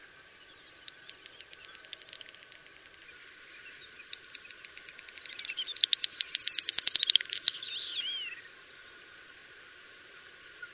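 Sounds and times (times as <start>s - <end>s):
Common snipe ticking calls and twittering: 0.5s - 8.5s.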